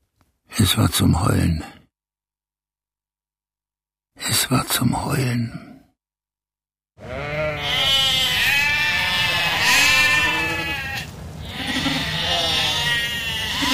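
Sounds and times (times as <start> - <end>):
speech: 0.6 - 1.8, 4.3 - 5.7
hungry lambs bleating: 7.0 - 13.7.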